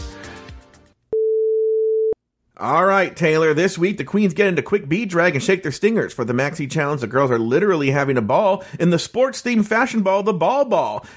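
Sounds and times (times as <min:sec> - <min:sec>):
beep tone: 0:01.2 - 0:02.2
speech: 0:02.6 - 0:11.1.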